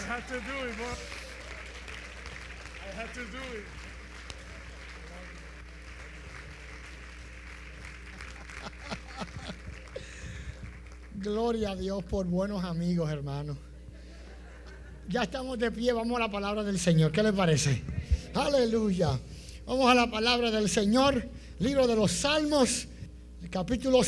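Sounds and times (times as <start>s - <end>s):
audience applauding: 0.0s - 11.2s
speech: 0.2s - 1.3s, 2.9s - 3.9s, 11.2s - 13.7s, 15.1s - 22.9s, 23.5s - 24.0s
laughter: 7.8s - 10.6s, 14.0s - 15.1s.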